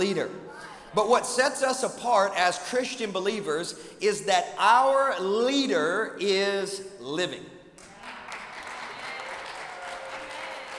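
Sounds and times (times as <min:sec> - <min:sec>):
speech: 0:00.0 - 0:07.5
crowd applauding: 0:07.8 - 0:10.7.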